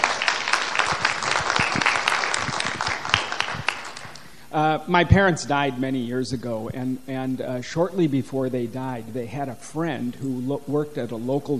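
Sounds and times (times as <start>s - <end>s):
audience applause: 0.0s - 4.2s
speech: 4.6s - 11.5s.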